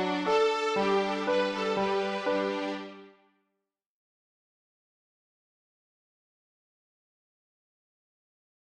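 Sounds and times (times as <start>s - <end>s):
bowed strings: 0.0s - 3.2s.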